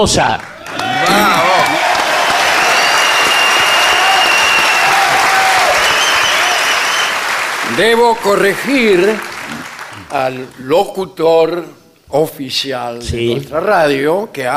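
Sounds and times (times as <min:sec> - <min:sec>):
speech: 0:00.0 - 0:01.4, 0:07.8 - 0:09.3, 0:10.1 - 0:14.5
audience cheering: 0:00.4 - 0:10.2.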